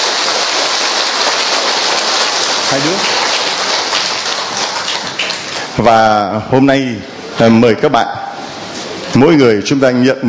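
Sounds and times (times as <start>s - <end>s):
crowd applauding: 0.0s - 6.0s
speech: 2.7s - 3.2s, 5.8s - 8.2s, 9.2s - 10.2s.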